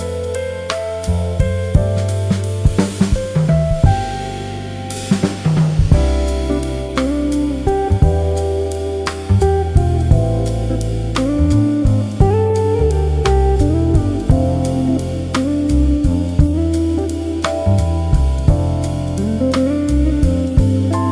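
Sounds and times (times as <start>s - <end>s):
chill jazz music: 0.0s - 21.0s.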